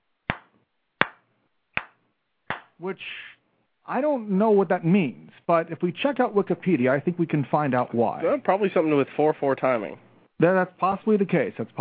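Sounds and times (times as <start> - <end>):
slow hand claps: 0.3 - 1.2, 1.8 - 2.8
speech: 2.8 - 11.7.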